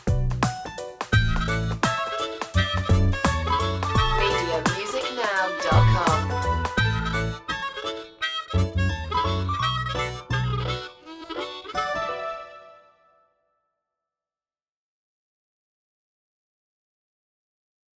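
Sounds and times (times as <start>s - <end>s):
children's reggae music: 0.0s - 13.0s.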